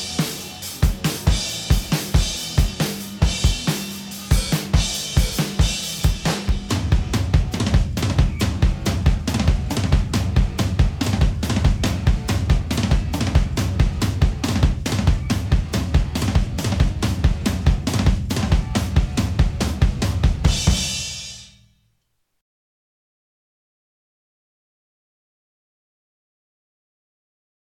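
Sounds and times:
drums: 0.0s - 21.8s.

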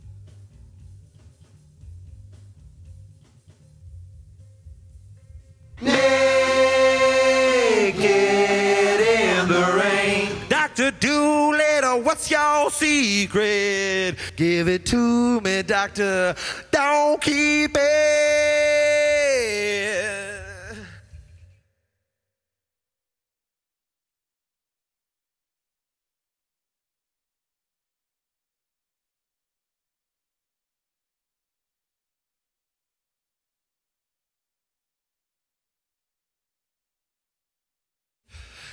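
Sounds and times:
person singing: 5.8s - 21.0s.

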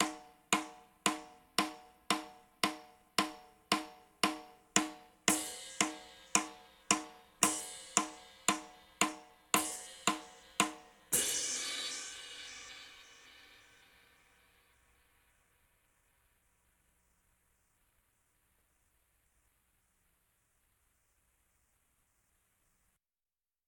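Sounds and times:
drums: 0.0s - 15.4s.

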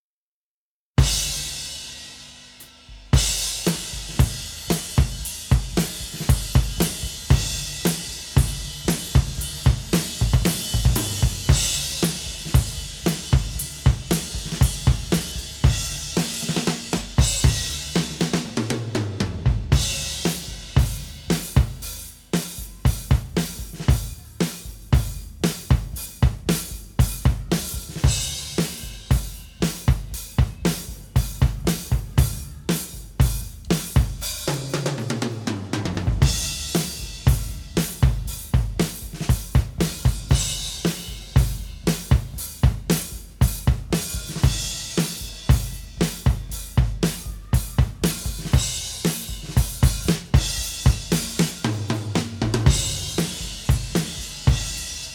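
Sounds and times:
drums: 1.0s - 55.1s.

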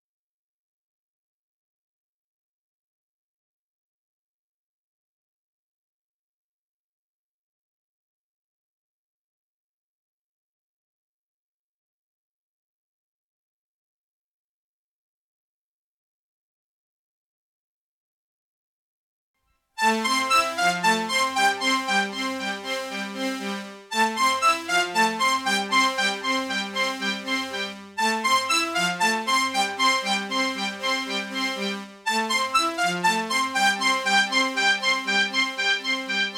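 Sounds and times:
multitrack keyboard instrument playing: 19.8s - 36.3s.

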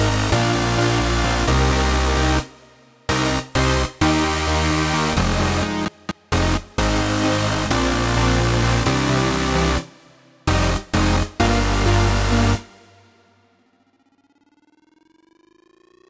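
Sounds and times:
bass without sidechain: 0.0s - 9.9s, 10.5s - 12.9s
main synths: 0.0s - 13.2s.

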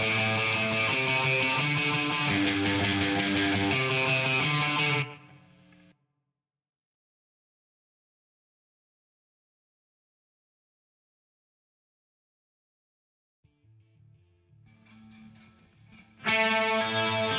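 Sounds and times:
guitar: 0.0s - 5.9s, 13.5s - 17.3s.

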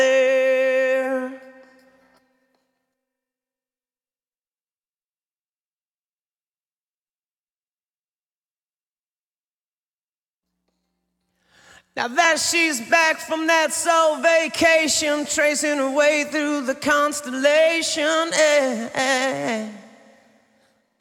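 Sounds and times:
person singing: 0.0s - 2.0s, 12.0s - 20.2s.

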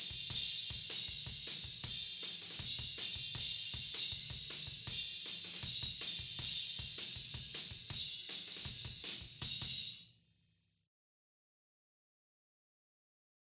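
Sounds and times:
drums: 0.0s - 10.4s.

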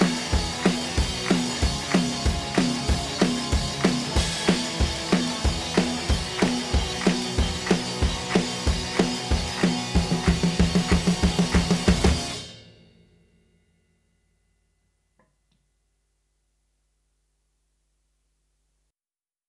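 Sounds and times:
drums: 0.0s - 13.8s.

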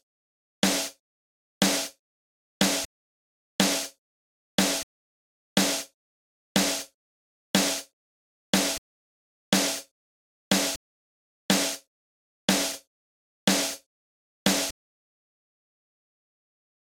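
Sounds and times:
drums: 0.6s - 1.0s, 1.6s - 2.0s, 2.6s - 2.9s, 3.6s - 4.0s, 4.6s - 4.9s, 5.6s - 6.0s, 6.6s - 7.0s, 7.6s - 7.9s, 8.6s - 8.8s, 9.5s - 9.9s, 10.5s - 10.8s, 11.5s - 11.9s, 12.5s - 12.9s, 13.5s - 13.9s, 14.5s - 14.8s.

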